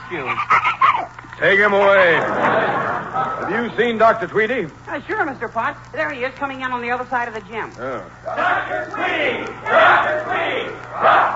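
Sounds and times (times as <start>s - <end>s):
laughter: 0.0s - 3.8s
speech: 0.1s - 0.8s, 1.4s - 11.3s
crowd cheering in gym: 1.8s - 3.7s, 8.2s - 11.3s.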